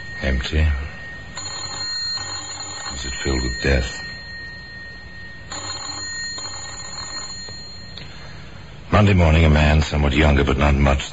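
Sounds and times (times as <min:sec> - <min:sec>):
bell ringing in an empty house: 0:00.0 - 0:08.6
speech: 0:00.2 - 0:00.9, 0:03.2 - 0:04.1, 0:09.0 - 0:11.1.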